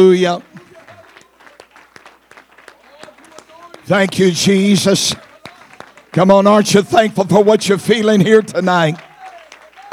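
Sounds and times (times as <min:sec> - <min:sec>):
speech: 0:00.0 - 0:00.5, 0:03.9 - 0:05.2, 0:06.1 - 0:09.1
audience clapping hands: 0:00.0 - 0:09.9.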